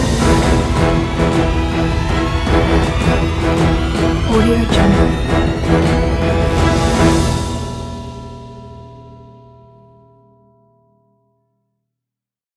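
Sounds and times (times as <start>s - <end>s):
dramatic news theme music: 0.0s - 7.8s.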